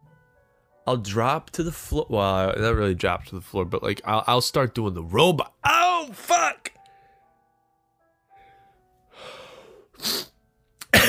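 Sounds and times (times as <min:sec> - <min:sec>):
speech: 0:00.8 - 0:06.3
allergy sneeze: 0:10.0 - 0:11.0.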